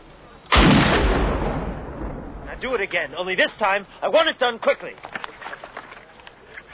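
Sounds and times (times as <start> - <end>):
weapon firing a single gunshot: 0.5 - 2.5
speech: 2.6 - 5.1.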